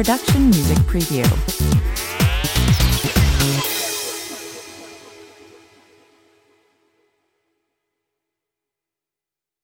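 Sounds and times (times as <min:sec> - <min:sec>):
funky mid-tempo electro-tech track at 125 bpm: 0:00.0 - 0:06.6.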